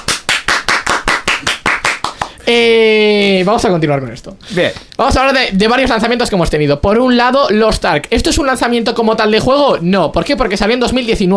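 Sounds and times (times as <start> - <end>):
applause: 0.0 - 2.4
speech: 2.5 - 11.3.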